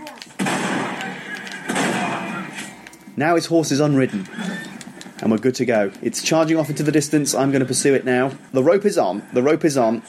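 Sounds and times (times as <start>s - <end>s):
sawn-off shotgun blasts in video game: 0.4s - 2.8s
speech: 3.2s - 4.5s, 5.2s - 10.0s.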